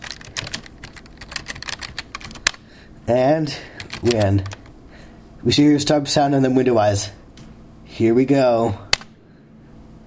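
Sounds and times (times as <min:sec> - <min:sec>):
rapid keystrokes on a computer keyboard typing a command at a DOS prompt: 0:00.0 - 0:02.6, 0:03.8 - 0:04.7
speech: 0:03.1 - 0:04.6, 0:05.4 - 0:07.2, 0:08.0 - 0:08.8.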